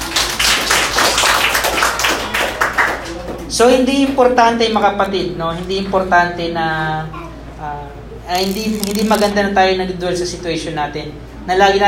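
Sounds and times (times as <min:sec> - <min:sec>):
congregation clapping during a church service: 0:00.0 - 0:03.6
speech: 0:03.6 - 0:11.8.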